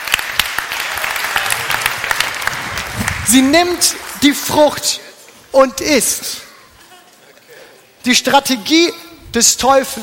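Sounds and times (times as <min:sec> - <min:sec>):
applause: 0:00.0 - 0:04.5
speech: 0:03.3 - 0:06.4, 0:08.0 - 0:10.0.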